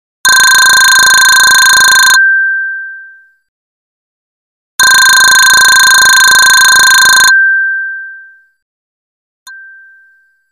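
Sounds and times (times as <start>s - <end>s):
telephone: 0.3s - 2.2s, 4.8s - 7.3s.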